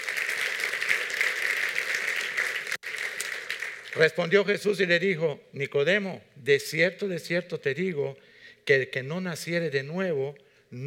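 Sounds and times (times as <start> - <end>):
audience applauding: 0.0 - 4.4
speech: 3.9 - 10.8.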